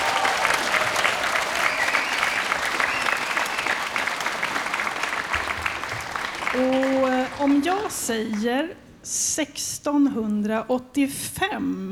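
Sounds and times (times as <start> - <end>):
audience applause for a trio: 0.0 - 8.5
speech: 7.6 - 11.9.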